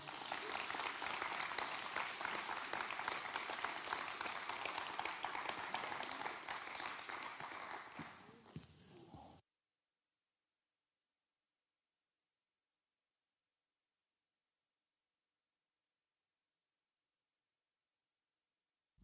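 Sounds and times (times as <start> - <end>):
congregation applauding at a Pentecost church service: 0.0 - 9.3
person speaking: 8.2 - 9.4.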